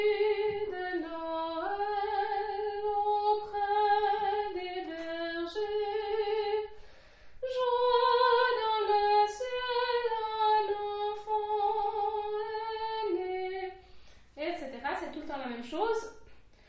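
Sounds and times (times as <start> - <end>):
soprano singing a Christmas night piece: 0.0 - 6.8, 7.4 - 13.8.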